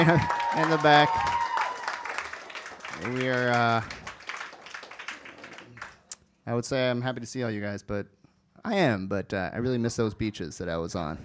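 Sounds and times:
laughter: 0.0 - 0.6
speech: 0.0 - 1.3, 3.0 - 4.0, 6.5 - 11.2
audience applause: 0.0 - 6.1.

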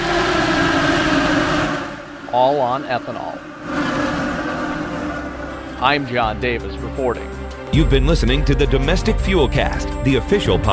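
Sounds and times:
Indy cars racing on track: 0.0 - 7.6
speech: 2.4 - 3.8, 5.8 - 10.7.

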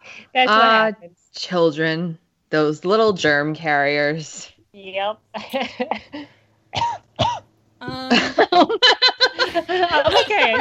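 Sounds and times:
speech: 0.3 - 10.5
cough: 6.7 - 8.4, 10.1 - 10.5
laughter: 7.8 - 10.5.

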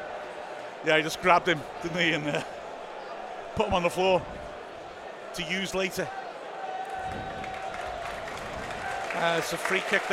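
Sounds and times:
speech: 0.8 - 2.6, 3.6 - 4.4, 5.4 - 6.2, 7.1 - 7.4, 9.2 - 10.1
stadium crowd applauding a yellow card: 6.4 - 10.1.

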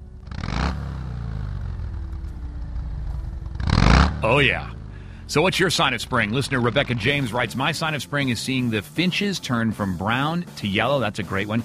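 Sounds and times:
Harley-Davidson Sportster motorcycle engine roaring and idling: 0.0 - 11.6
speech: 4.2 - 11.6.

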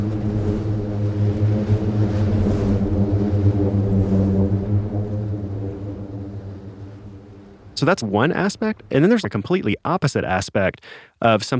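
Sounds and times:
booming sand dune when walked on: 0.0 - 9.4
speech: 7.8 - 11.5.

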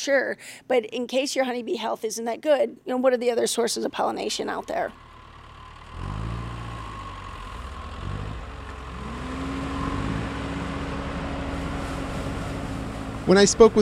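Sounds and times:
speech: 0.0 - 5.1, 13.3 - 13.7
cherry tree shaker machine running: 4.3 - 13.7.

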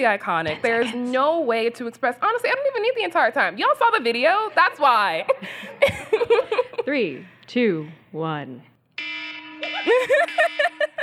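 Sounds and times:
speech: 0.0 - 8.7, 9.8 - 10.9
laughter: 4.4 - 6.9, 9.6 - 11.0
phone alarm ringtone: 9.0 - 11.0.

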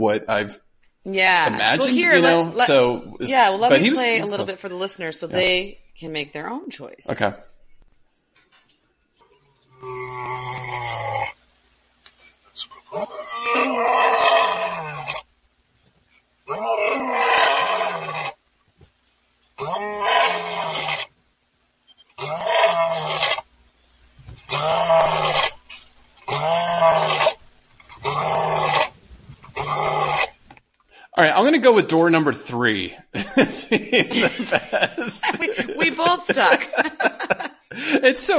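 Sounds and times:
laughter: 0.0 - 1.0, 1.6 - 2.7, 20.4 - 22.0, 26.1 - 32.2, 33.0 - 38.3
speech: 0.0 - 7.5, 12.6 - 14.3, 31.2 - 38.3
lion roaring: 9.6 - 11.4, 12.8 - 15.2, 16.5 - 18.4, 19.6 - 21.1, 22.2 - 23.4, 24.4 - 25.6, 26.3 - 30.4.

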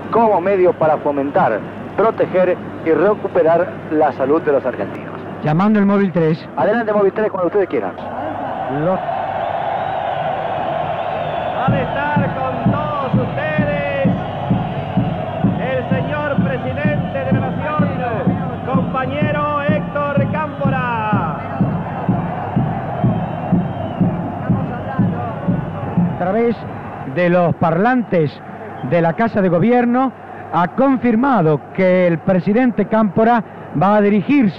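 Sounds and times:
crowd gathered outside Government House: 0.0 - 34.5
speech: 0.1 - 9.2, 26.2 - 34.5.

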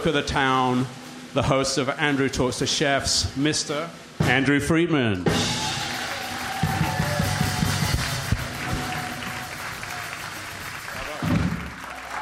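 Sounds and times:
speech: 0.0 - 5.6
live audience applause: 5.4 - 12.1.

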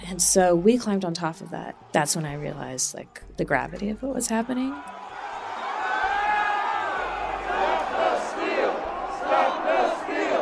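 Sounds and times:
speech: 0.1 - 5.0
large crowd chanting storming the Capitol: 4.8 - 10.4.

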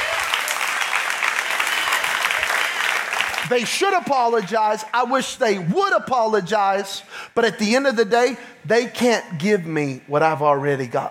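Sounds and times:
audience clapping hands: 0.0 - 4.9
speech: 3.5 - 11.1.

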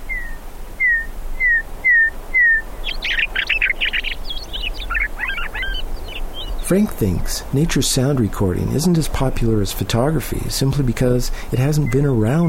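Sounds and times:
meadowlark singing: 0.0 - 12.4
speech: 6.7 - 12.4.

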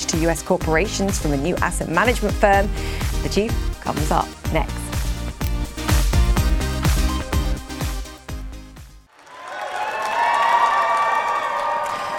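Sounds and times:
rhythmic music: 0.0 - 9.1
speech: 0.1 - 4.8
crowd cheering and applause at the New York Stock Exchange: 9.1 - 12.1.

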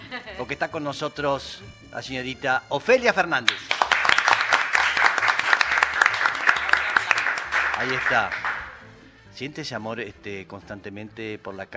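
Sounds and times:
speech: 0.1 - 3.8, 7.8 - 8.6, 9.4 - 11.7
loud audience applause: 3.5 - 8.8.

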